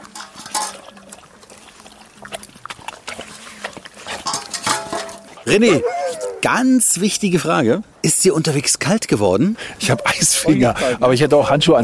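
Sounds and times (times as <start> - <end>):
bowl clinking: 0.0 - 1.3, 4.0 - 6.4
huskies chomping and slurping their food: 0.0 - 6.5
speech: 5.5 - 11.8.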